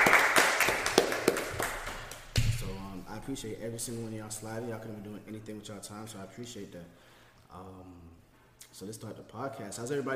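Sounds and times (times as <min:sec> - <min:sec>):
audience clapping: 0:00.0 - 0:02.4
speech: 0:03.3 - 0:08.2, 0:08.8 - 0:10.1.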